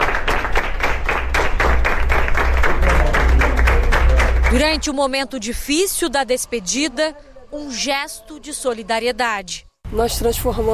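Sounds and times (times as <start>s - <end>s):
applause in a hospital: 0.0s - 5.0s
speech: 4.5s - 10.7s.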